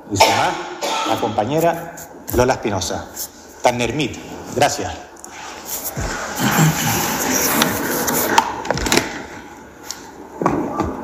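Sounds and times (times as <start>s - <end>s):
speech: 0.1s - 5.1s
paper sheets being moved near recorder: 5.3s - 9.1s.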